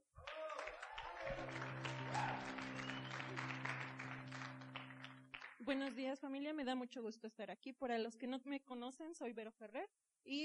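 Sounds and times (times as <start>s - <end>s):
audience applause: 0.2s - 5.7s
speech: 5.6s - 10.4s.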